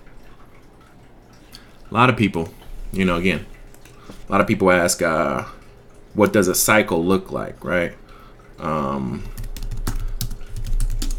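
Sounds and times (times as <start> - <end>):
speech: 1.9 - 3.5, 4.3 - 5.6, 6.2 - 8.0, 8.6 - 9.4
typing on a computer keyboard: 9.2 - 11.1.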